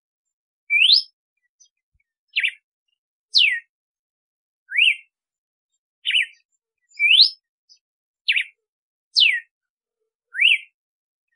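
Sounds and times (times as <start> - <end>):
female red-cowled cardinal singing to stimulate the male: 0.7 - 1.2, 3.4 - 3.7, 4.7 - 5.1, 6.0 - 6.3, 7.0 - 7.4, 9.2 - 9.5, 10.3 - 10.7.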